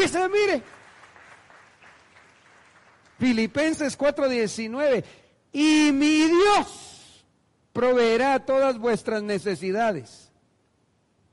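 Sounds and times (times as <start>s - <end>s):
speech: 0.0s - 0.8s, 3.2s - 6.9s, 7.8s - 10.2s
audience applause: 0.0s - 3.6s.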